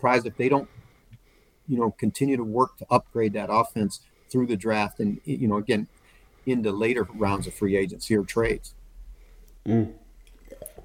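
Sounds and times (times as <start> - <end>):
speech: 0.0 - 0.8, 1.7 - 8.8, 9.6 - 10.0
sipping tea: 10.2 - 10.8.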